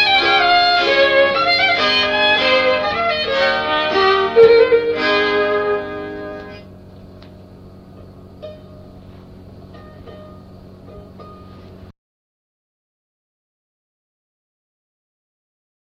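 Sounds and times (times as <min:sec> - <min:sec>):
polska dance tune: 0:00.0 - 0:06.6.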